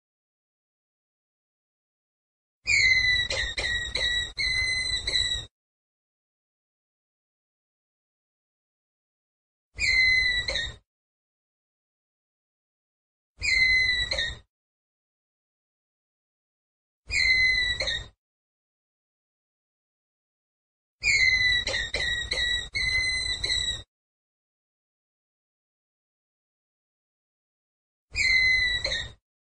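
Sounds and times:
ground squirrel whistled call: 0:02.7 - 0:05.5, 0:09.8 - 0:10.8, 0:13.4 - 0:14.4, 0:17.1 - 0:18.1, 0:21.0 - 0:23.8, 0:28.2 - 0:29.2.

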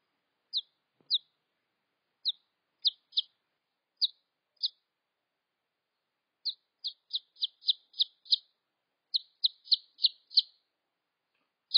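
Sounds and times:
red junglefowl chick peeps: 0:00.5 - 0:01.3, 0:02.2 - 0:03.4, 0:04.0 - 0:04.8, 0:06.4 - 0:08.5, 0:09.1 - 0:10.6.

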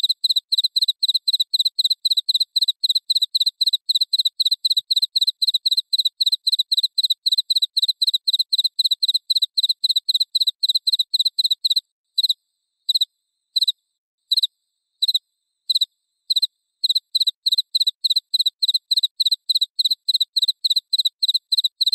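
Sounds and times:
cricket chirping: 0:00.0 - 0:21.9.

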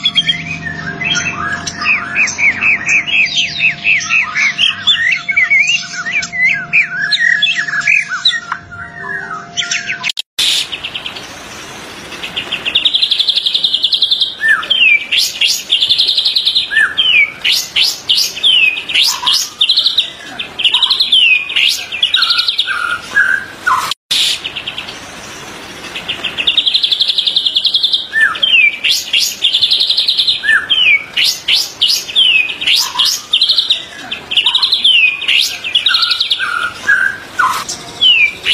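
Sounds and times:
white-rumped shama trilling and whistling: 0:00.0 - 0:10.9, 0:12.4 - 0:24.6, 0:26.2 - 0:38.5
steady hiss: 0:10.4 - 0:13.3, 0:24.1 - 0:27.5.

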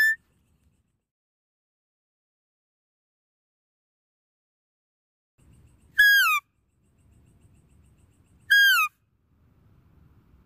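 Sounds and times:
deer whistled calls: 0:05.9 - 0:06.4, 0:08.5 - 0:08.9.

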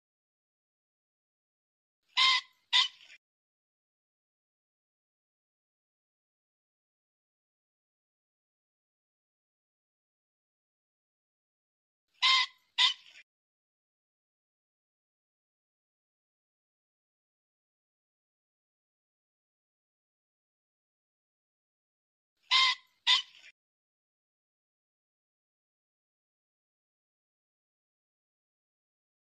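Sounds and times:
pheasant squawking: 0:02.1 - 0:03.2, 0:12.2 - 0:13.2, 0:22.5 - 0:23.5.

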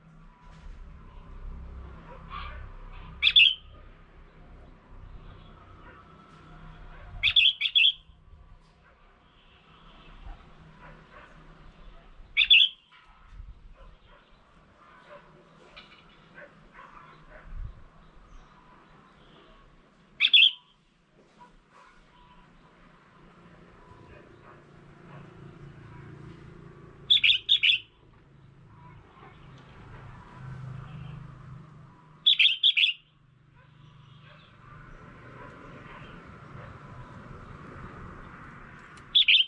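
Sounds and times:
red-whiskered bulbul calls: 0:03.2 - 0:03.7, 0:07.2 - 0:08.1, 0:12.4 - 0:12.9, 0:20.2 - 0:20.6, 0:27.1 - 0:28.0, 0:32.2 - 0:33.1, 0:39.2 - 0:39.4.

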